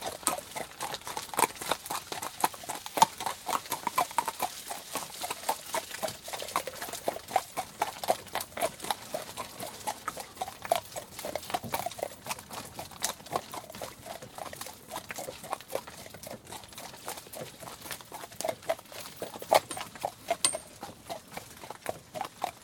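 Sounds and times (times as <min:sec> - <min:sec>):
horse hoofbeats: 0:00.0 - 0:22.6
cart and harness rattling: 0:05.7 - 0:12.7, 0:16.1 - 0:22.1.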